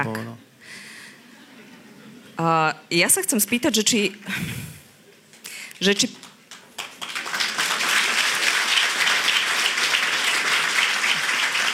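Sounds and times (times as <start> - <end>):
speech: 0.0 - 0.8, 2.4 - 4.8, 5.8 - 6.2
laughter: 1.2 - 2.4
audience applauding during a live discussion on justice: 6.5 - 11.7.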